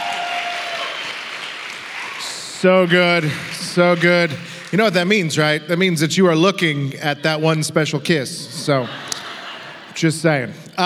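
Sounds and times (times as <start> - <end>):
crowd applause: 0.0 - 5.9, 8.8 - 10.0
speech: 2.6 - 9.0, 10.0 - 10.8
laughter: 2.9 - 5.6, 7.0 - 10.8.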